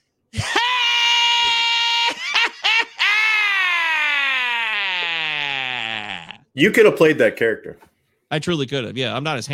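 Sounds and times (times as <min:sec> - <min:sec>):
man imitating the scream of the character Mr. Scream: 0:00.4 - 0:06.5
speech: 0:06.6 - 0:09.5.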